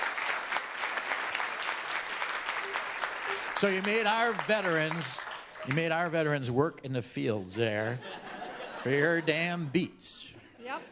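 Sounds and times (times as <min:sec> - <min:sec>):
audience applause: 0:00.0 - 0:06.3
speech: 0:03.6 - 0:08.2, 0:08.8 - 0:10.9
laughter: 0:07.6 - 0:09.8.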